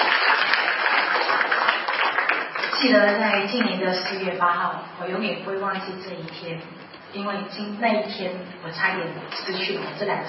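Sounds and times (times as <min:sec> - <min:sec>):
audience applauding at a Christian testimony gathering: 0:00.0 - 0:02.8
speech: 0:02.8 - 0:10.2.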